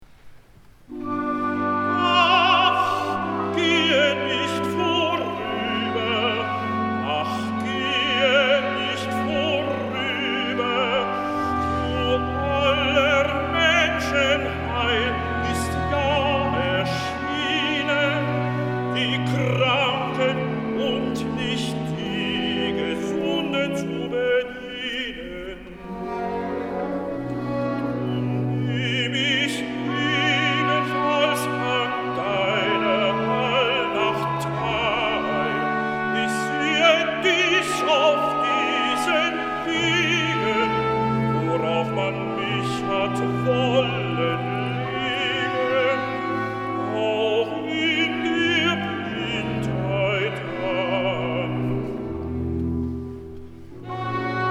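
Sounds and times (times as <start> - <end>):
tenor singing recitative: 0.9 - 54.5.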